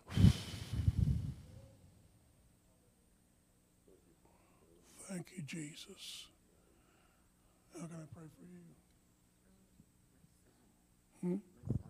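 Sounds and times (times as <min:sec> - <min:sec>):
deep breath blown out through the mouth during a healing prayer: 0:00.0 - 0:01.6
speech: 0:05.4 - 0:06.3, 0:07.8 - 0:08.9, 0:11.2 - 0:11.8.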